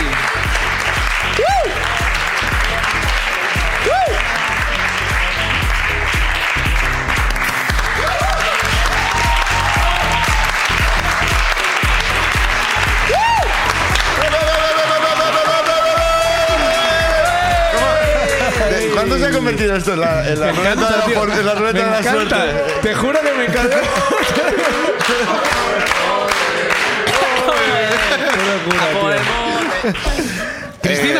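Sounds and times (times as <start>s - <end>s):
audience applause: 0.0s - 19.4s, 22.0s - 31.1s
whistles or cheers: 1.4s - 1.8s, 3.8s - 4.3s, 8.0s - 10.8s, 13.0s - 18.3s
laughter: 14.1s - 19.5s, 20.3s - 31.1s
speech: 19.4s - 25.9s, 28.4s - 31.1s.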